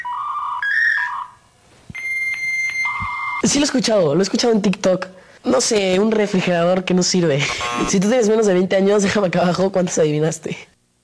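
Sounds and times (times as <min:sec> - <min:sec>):
steady high whistling tone: 0:00.0 - 0:03.4
faint static bursts: 0:00.1 - 0:11.0
dial-up internet modem connecting: 0:01.9 - 0:03.4
speech: 0:03.4 - 0:10.7.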